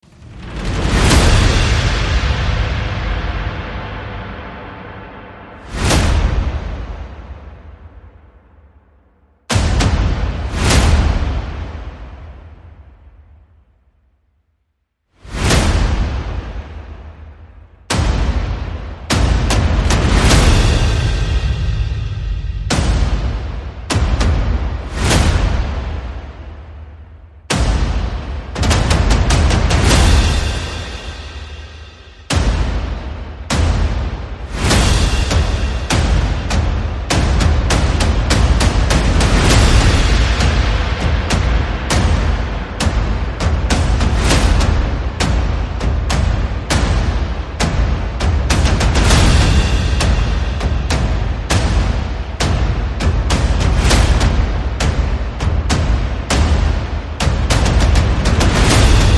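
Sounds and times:
percussion: 0.0s - 8.8s, 9.5s - 13.8s, 15.2s - 59.1s.

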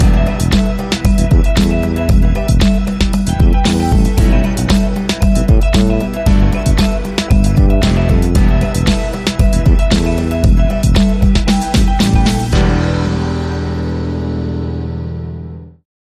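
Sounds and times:
funky catwalk show music: 0.0s - 15.7s.

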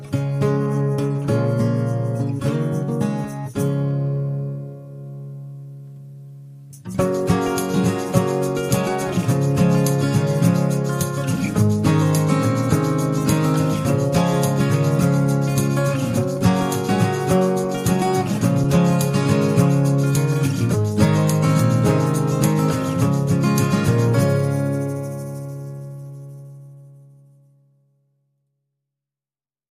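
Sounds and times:
guitars: 0.0s - 27.9s
drums: 7.0s - 25.7s.

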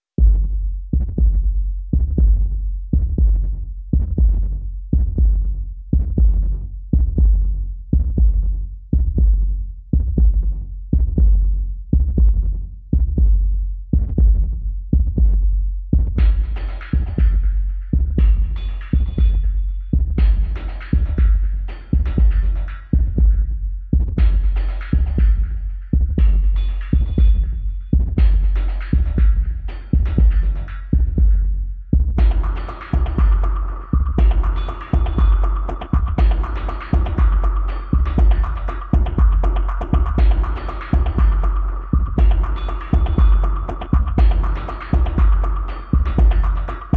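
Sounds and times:
drums: 0.2s - 46.9s.

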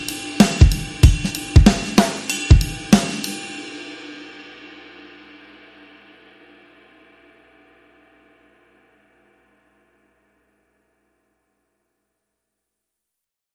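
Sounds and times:
drums: 0.0s - 8.8s.

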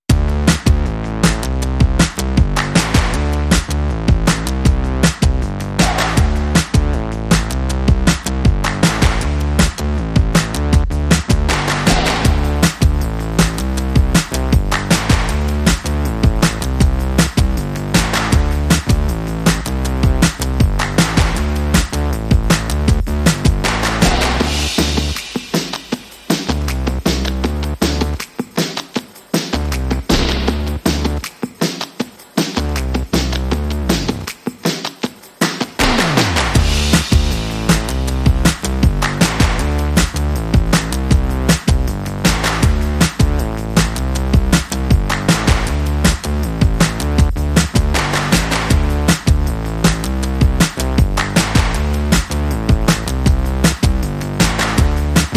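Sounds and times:
rhythm: 0.1s - 55.3s.

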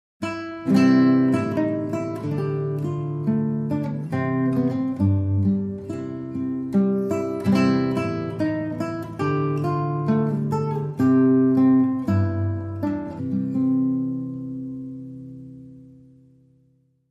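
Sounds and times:
solo guitar: 0.2s - 17.0s.

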